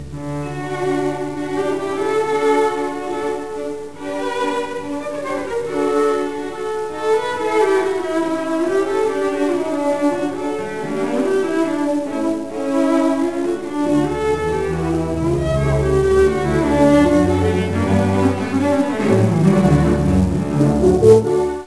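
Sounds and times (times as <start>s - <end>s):
cello phrase in D: 0.0s - 21.6s.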